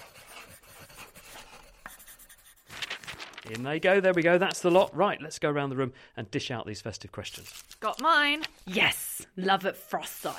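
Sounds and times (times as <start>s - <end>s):
pen scratching on paper slips: 0.0s - 2.9s
speech: 3.5s - 10.3s.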